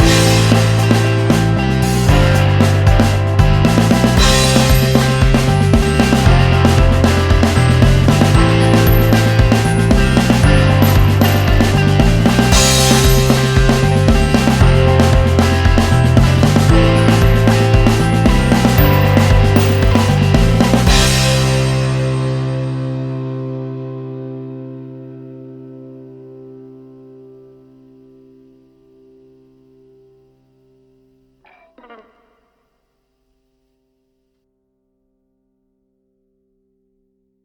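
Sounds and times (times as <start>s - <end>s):
instrumental music: 0.0s - 23.1s.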